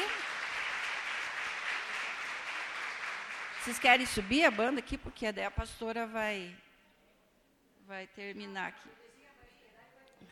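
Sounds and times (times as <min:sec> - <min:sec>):
church congregation applauding the widows during a service: 0:00.0 - 0:05.0
speech: 0:03.6 - 0:06.7, 0:07.9 - 0:09.0.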